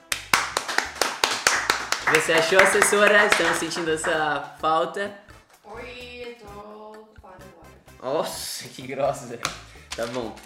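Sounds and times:
hands clapping: 0.0 - 4.5, 9.3 - 10.4
speech: 2.1 - 6.6, 8.0 - 10.4.

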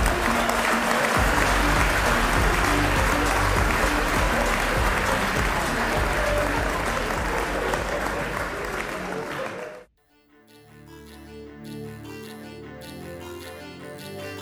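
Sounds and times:
faint cheering: 0.0 - 9.9
large audience applause: 0.0 - 9.9.

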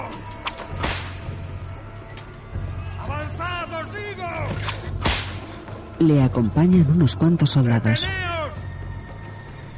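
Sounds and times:
whip lashes driving slaves carrying an emissary: 0.4 - 1.2, 4.7 - 5.4
speech: 6.0 - 8.3.

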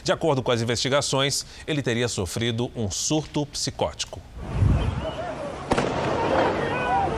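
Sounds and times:
speech: 0.0 - 4.7
rifle gunshots fired by a PM soldier: 5.7 - 7.0.

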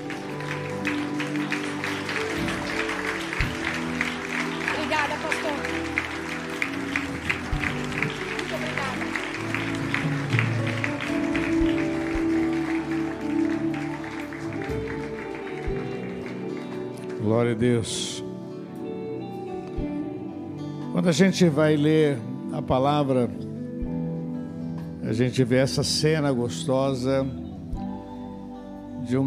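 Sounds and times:
audience applause: 0.0 - 17.6
music-like tones: 0.0 - 29.2
speech: 17.4 - 18.1, 21.0 - 23.4, 25.1 - 27.4.

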